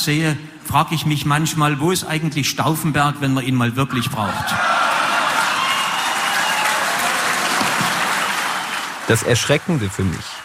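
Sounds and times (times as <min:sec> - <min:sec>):
speech: 0:00.0 - 0:04.7, 0:09.1 - 0:10.4
audience bawling: 0:03.9 - 0:10.4.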